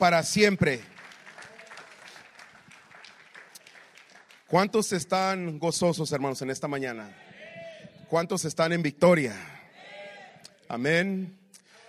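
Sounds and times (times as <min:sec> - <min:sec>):
speech: 0:00.0 - 0:00.9, 0:04.5 - 0:07.3, 0:08.1 - 0:09.6, 0:10.7 - 0:11.4
applause: 0:00.0 - 0:05.4.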